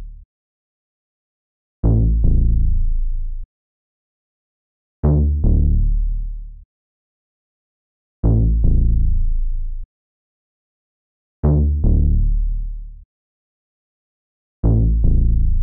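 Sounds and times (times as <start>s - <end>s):
150 BPM bass loop in A minor: 1.8s - 2.7s, 5.0s - 5.9s, 8.2s - 9.3s, 11.4s - 12.6s, 14.6s - 15.5s.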